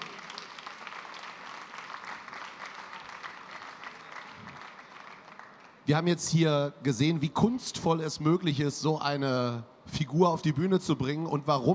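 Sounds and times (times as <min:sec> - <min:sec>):
audience applause: 0:00.0 - 0:05.8
speech: 0:05.9 - 0:11.7.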